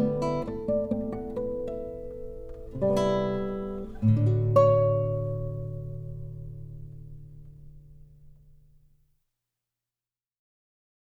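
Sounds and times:
guitar prelude: 0.0s - 8.6s.

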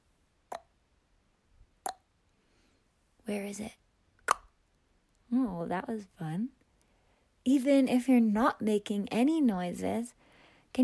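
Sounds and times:
tongue cluck with mouth shaped like O: 0.5s - 0.7s
speech: 3.3s - 3.8s, 5.3s - 6.6s, 7.4s - 10.8s.

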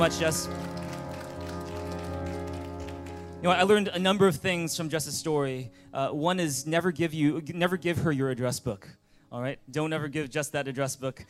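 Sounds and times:
speech: 0.0s - 0.7s, 3.4s - 11.2s
audience applause: 0.0s - 3.5s.

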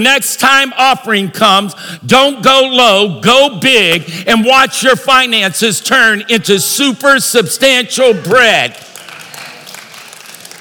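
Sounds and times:
speech: 0.0s - 8.9s
scattered audience clapping: 8.6s - 10.5s.

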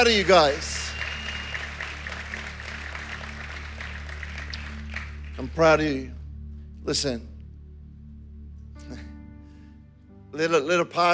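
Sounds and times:
speech: 0.0s - 0.7s, 5.4s - 6.2s, 6.8s - 7.3s, 10.4s - 11.1s
audience clapping: 0.0s - 6.0s.

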